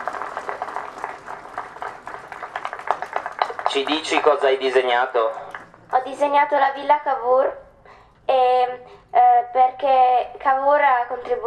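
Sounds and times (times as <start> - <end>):
crowd applauding a prize winner: 0.0 - 6.0
speech: 3.7 - 5.4, 6.0 - 7.6, 8.3 - 11.4.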